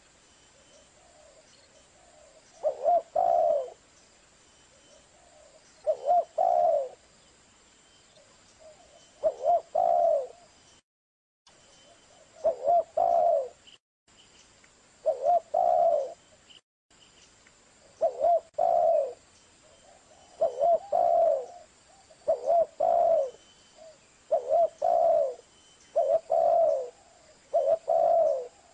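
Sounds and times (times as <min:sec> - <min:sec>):
spotted dove cooing on a lure recording: 0:01.0 - 0:03.8, 0:05.1 - 0:07.0, 0:08.6 - 0:10.5, 0:12.1 - 0:13.6, 0:15.0 - 0:16.2, 0:18.0 - 0:28.7.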